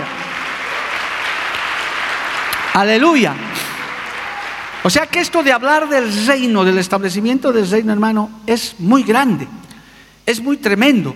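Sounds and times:
audience applause: 0.0s - 5.4s
speech: 2.8s - 3.5s, 4.8s - 9.6s, 10.3s - 11.1s.

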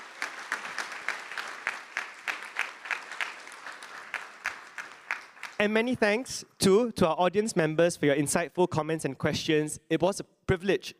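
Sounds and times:
audience applause: 0.0s - 5.7s
speech: 5.6s - 10.9s.

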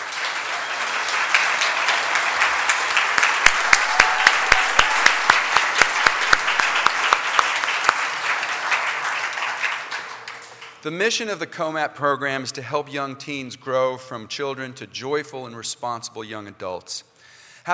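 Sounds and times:
audience applause: 0.0s - 10.8s
speech: 10.8s - 17.7s.

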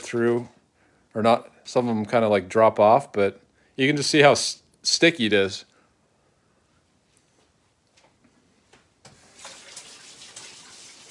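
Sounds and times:
speech: 0.1s - 5.7s
tap water running as a sticky As Seen on TV product is rinsed off: 9.1s - 11.0s.

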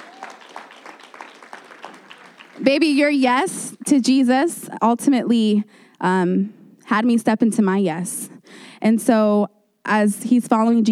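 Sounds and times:
voices whooping: 0.0s - 0.8s
audience applause: 0.0s - 2.7s
speech: 2.6s - 10.8s.

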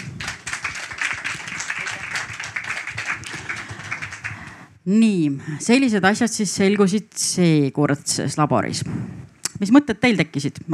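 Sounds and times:
audience applause: 0.0s - 4.6s
speech: 4.8s - 10.7s.

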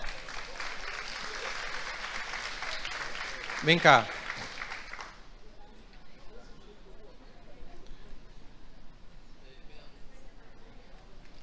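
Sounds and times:
audience applause: 0.0s - 5.2s
speech: 3.6s - 4.2s.

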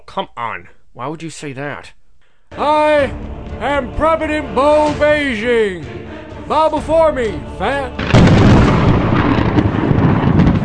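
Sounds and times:
speech: 0.2s - 8.4s
thunderclap from a lightning machine: 8.0s - 10.6s.

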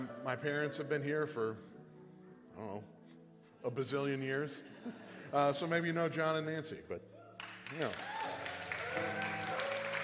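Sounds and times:
speech: 0.2s - 1.7s, 2.6s - 3.0s, 3.6s - 7.1s, 7.7s - 8.2s, 9.0s - 9.6s
audience applause: 7.4s - 10.0s.

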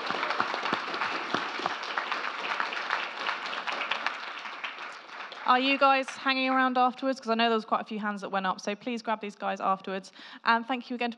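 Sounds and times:
crowd applauding: 0.0s - 6.6s
speech: 5.5s - 11.1s.

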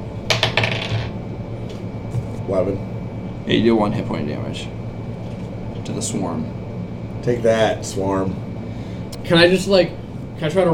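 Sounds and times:
dice rolling on a table: 0.3s - 1.1s
speech: 2.5s - 2.9s, 3.5s - 4.8s, 5.9s - 6.6s, 7.2s - 8.5s, 9.3s - 10.7s.

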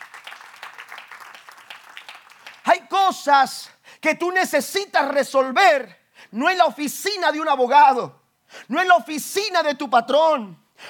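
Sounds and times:
crowd audience applauding: 0.0s - 2.7s
speech: 3.1s - 10.6s.

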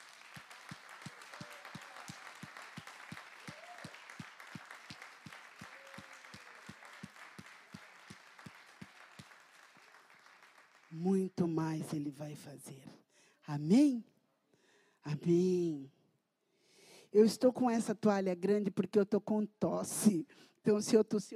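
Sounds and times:
audience clapping hands: 0.0s - 12.1s
speech: 11.0s - 14.1s, 15.1s - 16.0s, 17.1s - 21.3s.

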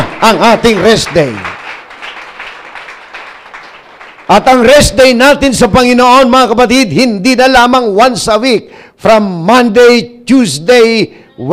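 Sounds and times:
audience applause: 0.0s - 4.7s
speech: 0.2s - 1.5s, 4.3s - 11.5s.

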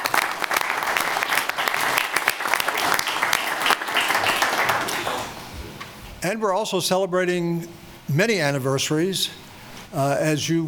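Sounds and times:
applause from the audience at a city commission meeting marking German unification anniversary: 0.0s - 5.4s
speech: 6.2s - 10.6s.

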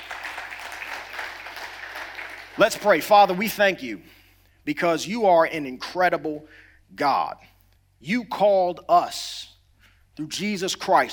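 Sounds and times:
audience clapping hands: 0.0s - 3.4s
speech: 2.6s - 9.3s, 10.2s - 11.1s.

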